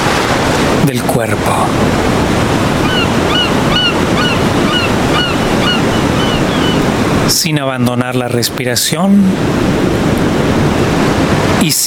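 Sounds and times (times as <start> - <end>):
ocean waves washing onto a beach: 0.0 - 11.8
speech: 0.9 - 2.2, 7.3 - 11.8
short rising bird calls: 2.7 - 7.2.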